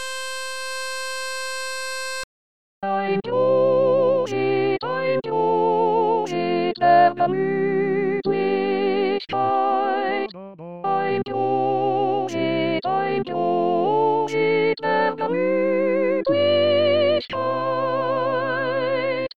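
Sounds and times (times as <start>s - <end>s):
barbershop tenor singing: 2.8s - 19.3s.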